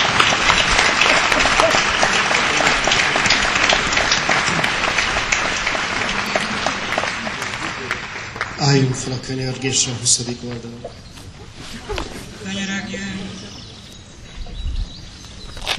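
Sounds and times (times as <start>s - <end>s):
laughter: 0.0s - 8.2s, 11.2s - 14.0s
audience applause: 0.0s - 10.1s
speech: 8.7s - 11.2s.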